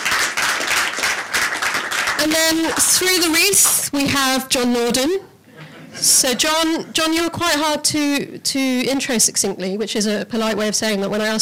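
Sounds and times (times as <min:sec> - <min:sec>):
crowd applauding: 0:00.0 - 0:03.9
speech: 0:02.2 - 0:05.3, 0:06.0 - 0:11.4.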